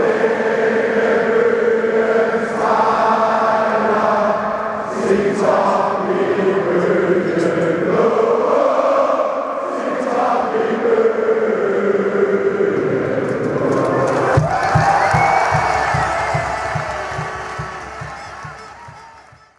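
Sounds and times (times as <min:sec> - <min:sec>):
crowd chanting: 0:00.0 - 0:19.5.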